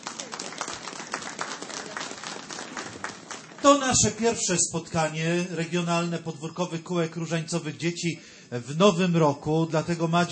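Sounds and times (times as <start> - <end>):
audience applause: 0.0 - 4.0
speech: 3.6 - 10.3.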